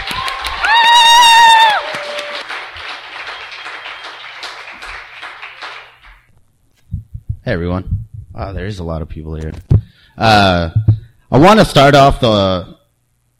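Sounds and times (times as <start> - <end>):
audience applause: 0.0 - 6.2
speech: 7.5 - 12.7.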